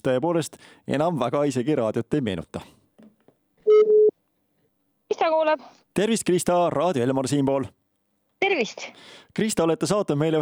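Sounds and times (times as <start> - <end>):
speech: 0.0 - 2.8, 5.2 - 7.8, 8.4 - 10.4
telephone tone beep: 3.7 - 4.1.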